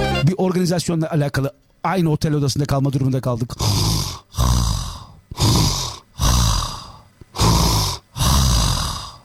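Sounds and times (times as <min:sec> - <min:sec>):
speech: 0:00.4 - 0:04.3
imitated snoring: 0:03.6 - 0:09.2.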